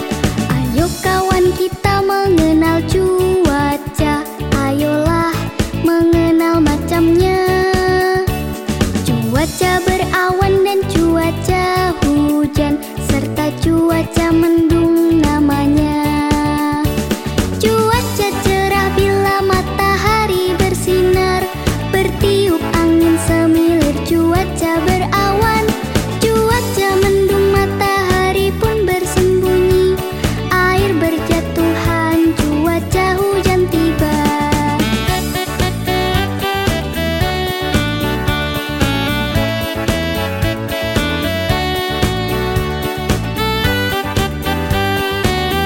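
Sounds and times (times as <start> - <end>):
children's song about the weather: 0.1 - 40.1, 40.8 - 45.6.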